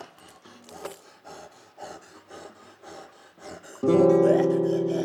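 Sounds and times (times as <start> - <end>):
noise instrumental music: 3.8 - 5.0.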